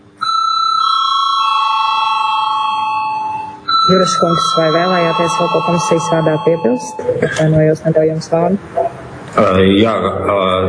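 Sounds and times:
parliament voting bell: 0.2 - 7.5
speech: 3.9 - 8.8, 9.4 - 10.6.

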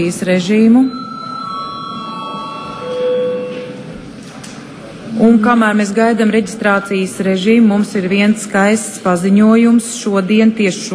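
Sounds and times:
speech: 0.0 - 1.0, 5.2 - 10.9
low murmur of noise: 0.0 - 10.9
bell rung to call a session break: 0.6 - 4.0.

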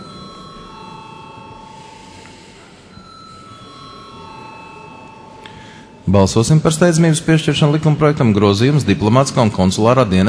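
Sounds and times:
parliament voting bell ringing: 0.0 - 7.6
speech: 6.1 - 10.2.

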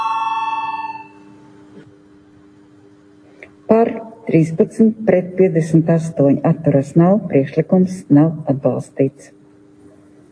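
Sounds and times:
parliament voting bell ringing, bright and metallic with buzzing tremble: 0.0 - 1.4
quiet hum of room noise: 0.0 - 10.2
speech: 3.9 - 9.4.

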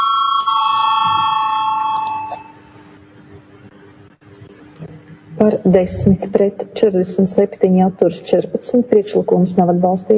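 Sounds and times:
parliamentary voting electric bell ringing: 0.0 - 2.7
speech: 5.4 - 10.1.

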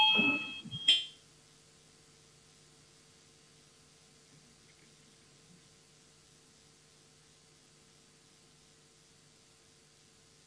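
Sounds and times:
parliament voting bell electronic tone: 0.0 - 1.1
sharp high ring: 0.0 - 1.2.

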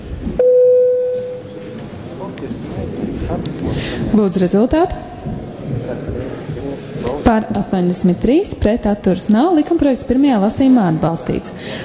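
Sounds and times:
parliament bell signalling a vote: 0.4 - 1.8
low murmur of voices: 1.4 - 11.8
speech: 4.2 - 6.2, 7.3 - 11.8.

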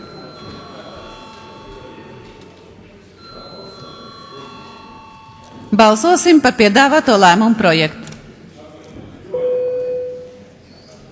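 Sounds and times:
parliament voting bell ringing: 0.0 - 2.6, 3.2 - 7.5
murmur of voices: 0.0 - 11.0
speech: 5.7 - 8.0.

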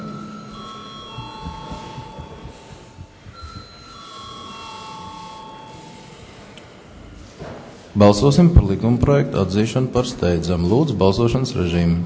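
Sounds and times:
parliament electric bell calling members to vote: 0.0 - 7.3
low murmur of noise: 0.0 - 12.0
speech: 8.0 - 12.0.

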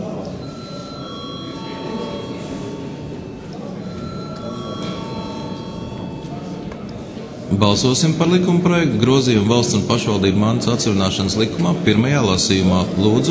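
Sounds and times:
murmur of voices: 0.0 - 13.3
parliament session bell ringing: 0.4 - 6.8
speech: 7.5 - 13.3.

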